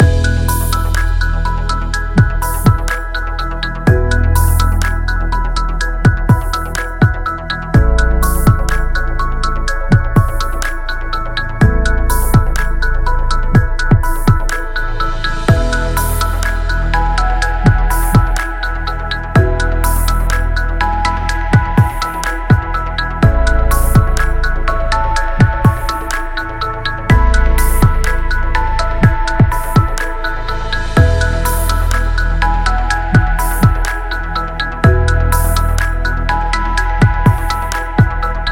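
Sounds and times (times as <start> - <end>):
minimal music loop: 0.0 - 38.5.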